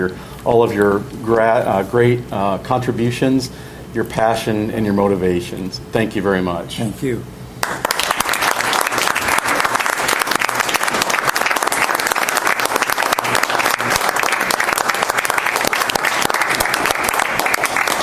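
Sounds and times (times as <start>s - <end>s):
speech: 0.0s - 7.4s
standing ovation applause from audience: 7.6s - 18.0s.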